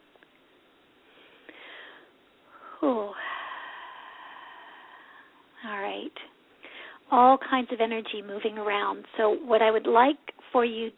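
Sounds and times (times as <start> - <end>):
deep inhale through the nose during a guided group meditation: 1.1 - 2.6, 3.2 - 5.5, 6.6 - 7.1
speech: 2.8 - 3.2, 7.1 - 10.9.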